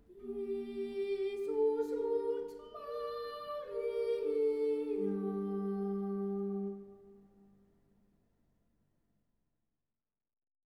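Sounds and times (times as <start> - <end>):
boys choir singing: 0.2 - 7.0.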